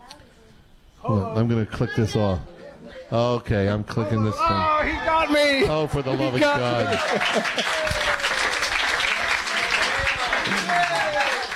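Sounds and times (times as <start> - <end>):
speech: 1.0 - 2.5, 3.1 - 8.1
laughter: 5.3 - 8.7
crowd cheering and applause: 6.3 - 11.5.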